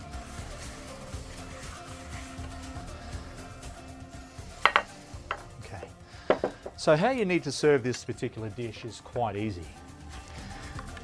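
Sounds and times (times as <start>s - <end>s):
serving plate set down on a kitchen bench: 4.6s - 5.5s, 6.3s - 6.8s
speech: 6.8s - 9.8s.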